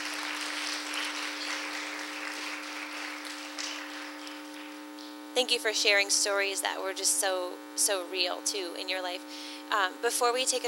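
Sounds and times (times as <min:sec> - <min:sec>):
group clapping: 0:00.0 - 0:05.2
faint constant hum: 0:00.0 - 0:10.6
speech: 0:05.4 - 0:10.6.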